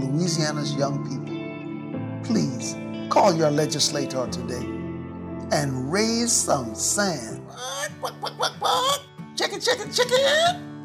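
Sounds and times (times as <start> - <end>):
speech: 0.3 - 1.3, 2.3 - 4.8, 5.5 - 10.7
chicken clucking and squawking: 7.6 - 9.1.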